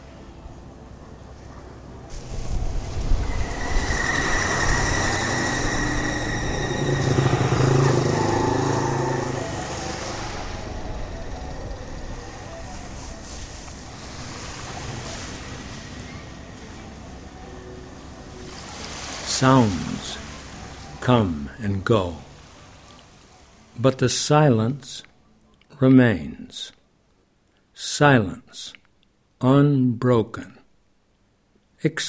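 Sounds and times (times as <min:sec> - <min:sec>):
waves at the harbor of Skala at night: 0:00.0 - 0:24.7
passing vehicles at the harbor of Skala at night: 0:02.1 - 0:21.0
speech: 0:19.4 - 0:19.8, 0:21.1 - 0:22.2, 0:23.8 - 0:25.1, 0:25.8 - 0:26.8, 0:27.8 - 0:28.8, 0:29.4 - 0:30.6, 0:31.8 - 0:32.0.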